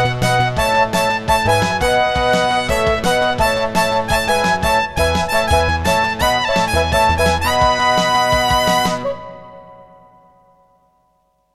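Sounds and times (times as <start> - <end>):
MT-32 synthesizer intro music: 0.0 - 10.4.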